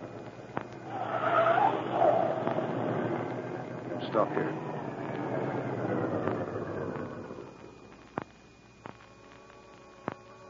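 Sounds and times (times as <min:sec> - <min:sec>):
car engine rumble turning into a driveway: 0:00.0 - 0:10.4
tires scrubbing on gravel in a radio drama sound effect: 0:00.1 - 0:07.5
speech: 0:04.1 - 0:04.7.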